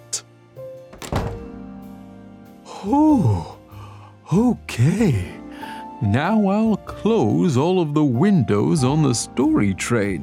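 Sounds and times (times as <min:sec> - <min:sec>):
door being shut: 0:00.9 - 0:01.7
speech: 0:02.8 - 0:03.6, 0:04.3 - 0:05.4, 0:06.0 - 0:10.2.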